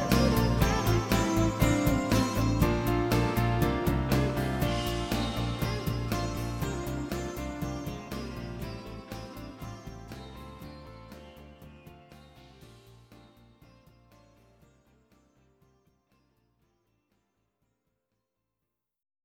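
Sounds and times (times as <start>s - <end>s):
karaoke singing: 0.0s - 10.4s.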